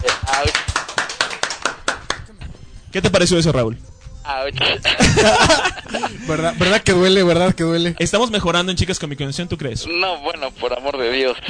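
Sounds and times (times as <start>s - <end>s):
applause: 0.0s - 2.3s
speech: 2.9s - 11.4s
laughter: 4.6s - 7.0s.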